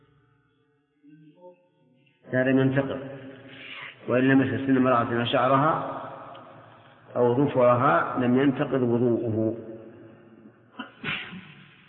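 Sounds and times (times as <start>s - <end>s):
speech: 1.1s - 3.3s, 4.0s - 6.0s, 7.1s - 9.7s
sneeze: 10.8s - 11.8s.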